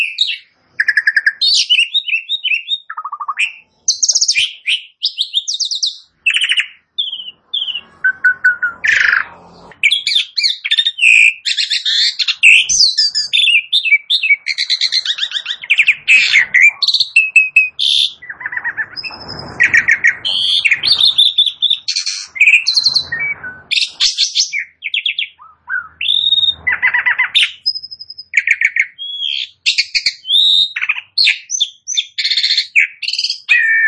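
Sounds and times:
Asian pied starling singing: 0:00.0 - 0:33.8.

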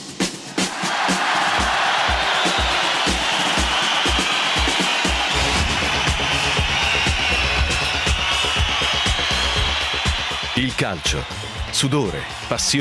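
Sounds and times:
football fans cheering and shouting: 0:00.4 - 0:12.7
speech: 0:10.8 - 0:12.7.

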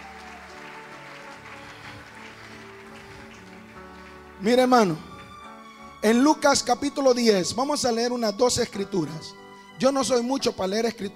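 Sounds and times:
audience applauding: 0:00.0 - 0:06.3
speech: 0:04.4 - 0:05.1, 0:06.0 - 0:11.1.

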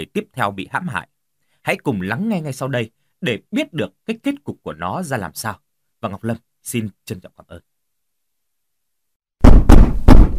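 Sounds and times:
speech: 0:00.2 - 0:07.7
heavy pounding knocks on a door: 0:09.4 - 0:10.3.

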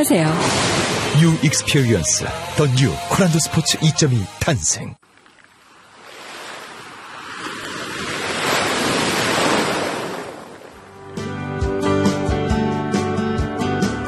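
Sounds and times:
speech: 0:00.0 - 0:05.1
ocean waves: 0:00.0 - 0:11.1
music with a steady beat: 0:11.2 - 0:14.0.

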